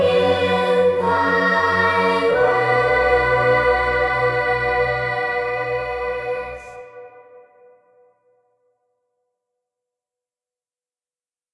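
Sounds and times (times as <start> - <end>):
choir singing: 0.0 - 7.5.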